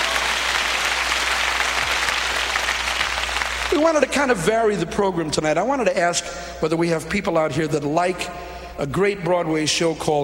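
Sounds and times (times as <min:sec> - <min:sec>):
audience applause: 0:00.0 - 0:04.1
speech: 0:03.8 - 0:10.2.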